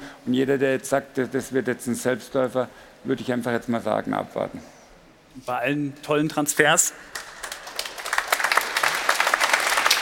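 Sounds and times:
speech: 0.2 - 4.8, 5.4 - 7.2
hesitant applause: 7.1 - 9.9.

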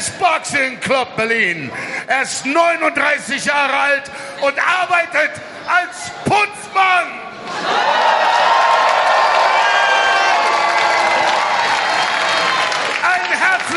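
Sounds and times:
speech: 0.2 - 7.8
crowd cheering and shouting: 5.7 - 13.7
crowd applause: 7.5 - 13.7.

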